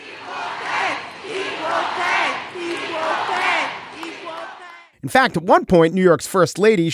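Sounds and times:
parade crowd chanting cheer: 0.0 - 5.0
speech: 5.0 - 6.9.

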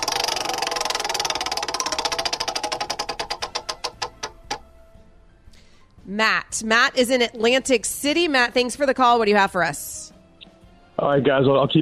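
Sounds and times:
prize wheel spinning and ticking: 0.0 - 4.6
speech: 6.1 - 10.0, 11.0 - 11.7.

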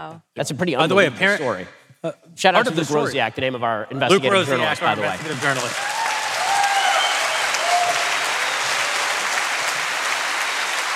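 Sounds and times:
speech: 0.0 - 6.0
crowd audience applause: 4.3 - 10.9.

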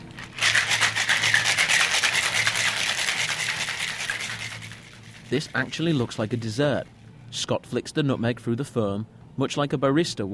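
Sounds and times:
cocktail being shaken with egg whites: 0.0 - 6.5
speech: 5.3 - 10.3.

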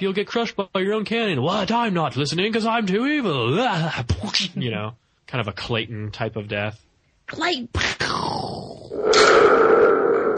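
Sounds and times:
speech: 0.0 - 9.8
Thunder Tube rumbling sound effect: 8.9 - 10.3.

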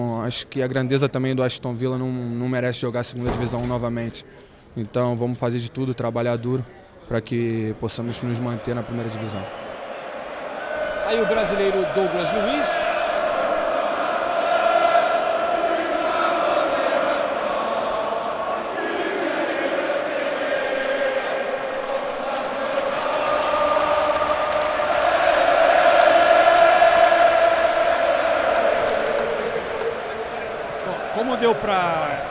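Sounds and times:
speech: 0.0 - 9.6, 11.1 - 12.8
large crowd of football fans singing a chant: 8.0 - 32.3.

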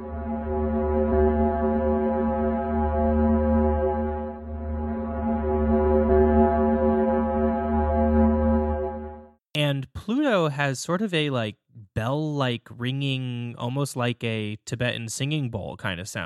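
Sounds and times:
low drone sonification of planet Venus: 0.0 - 9.4
speech: 10.5 - 16.2.

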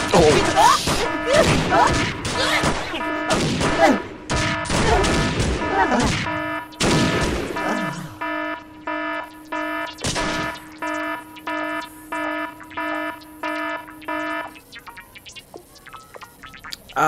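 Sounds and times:
gunfire bursts aimed at an alien: 0.0 - 11.1
steady droning background: 0.0 - 17.0.

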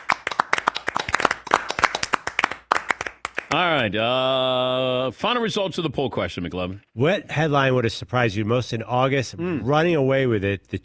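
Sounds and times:
round of applause: 0.0 - 3.6
speech: 3.5 - 10.8.

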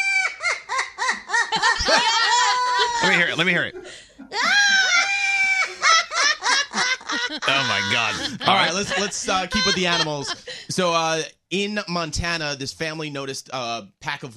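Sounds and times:
parrot making an evil laugh: 0.0 - 3.4, 4.3 - 10.4
speech: 3.0 - 4.4, 7.3 - 14.3.

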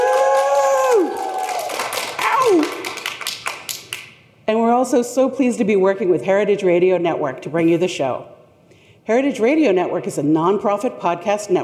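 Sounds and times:
live audience at the Fancy Food Show in New York applauding and cheering: 0.0 - 4.0
speech: 4.5 - 8.4, 9.0 - 11.6.

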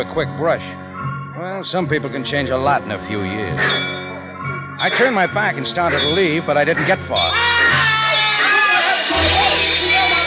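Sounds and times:
speech: 0.0 - 7.9
crowd shouting wildly: 7.2 - 10.2.

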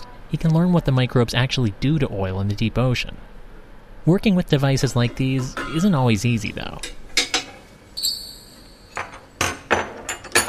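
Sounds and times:
speech: 0.3 - 3.3, 4.0 - 7.0
metal tools clanking against pipes and valves: 4.9 - 7.6, 8.9 - 10.4.

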